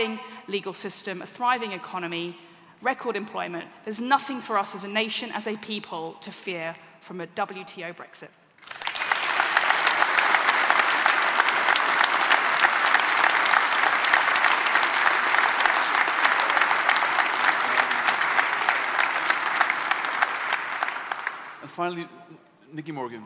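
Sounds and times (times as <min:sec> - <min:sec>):
speech: 0:00.0 - 0:08.4, 0:21.8 - 0:23.2
audience applause: 0:08.6 - 0:21.7.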